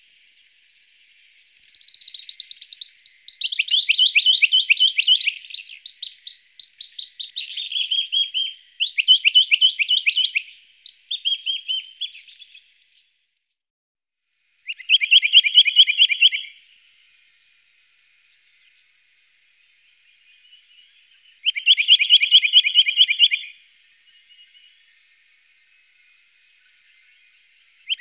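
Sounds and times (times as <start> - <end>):
Western rock nuthatch calling: 1.1 - 12.8, 14.6 - 16.6, 20.0 - 27.9.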